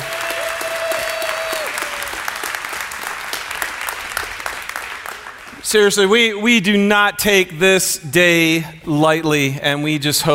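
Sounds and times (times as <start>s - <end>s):
audience applause: 0.0s - 5.6s
speech: 5.7s - 10.3s.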